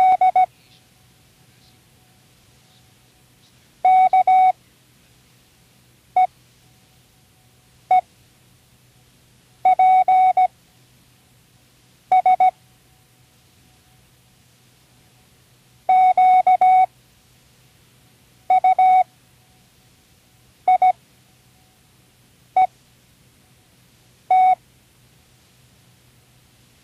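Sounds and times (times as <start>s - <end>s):
Morse code: 0.0s - 0.5s, 3.8s - 4.6s, 9.7s - 10.5s, 12.1s - 12.5s, 15.9s - 16.9s, 18.5s - 19.1s, 20.7s - 21.0s, 24.3s - 24.6s.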